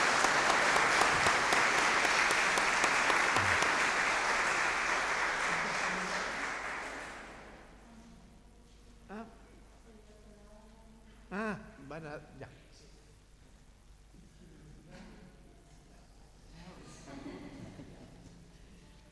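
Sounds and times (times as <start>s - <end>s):
crowd applauding: 0.0s - 7.6s.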